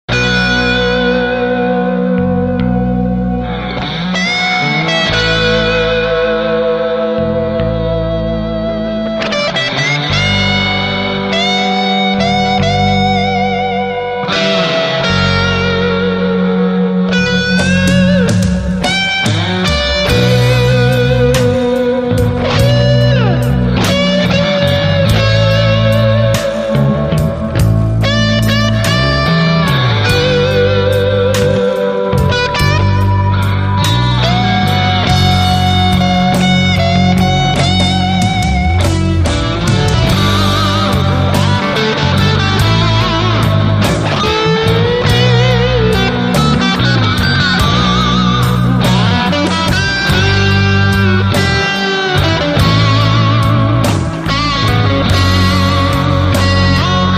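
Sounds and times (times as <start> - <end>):
ballad with wah effect: 0.0 - 57.1.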